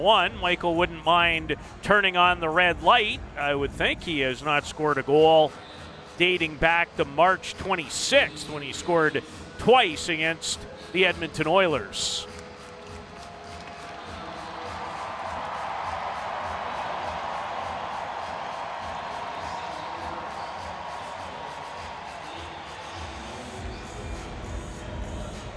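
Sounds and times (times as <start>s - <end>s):
speech: 0.0s - 12.4s
hockey arena crowd cheering as Matt Duchene comes out of the penalty box: 12.7s - 23.8s.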